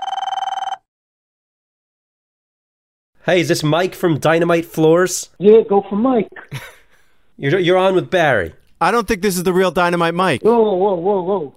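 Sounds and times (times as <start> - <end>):
telephone ringing on a call to a flooring company: 0.0 - 0.9
speech: 3.2 - 6.8, 7.4 - 11.5.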